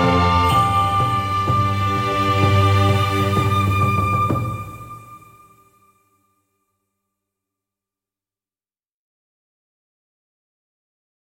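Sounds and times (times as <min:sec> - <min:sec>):
background music: 0:00.0 - 0:06.8.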